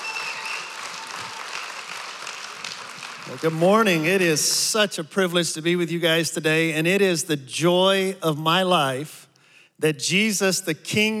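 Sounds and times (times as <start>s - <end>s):
church congregation applauding a guest speaker: 0.0s - 4.3s
speech: 3.3s - 9.2s, 9.8s - 11.1s.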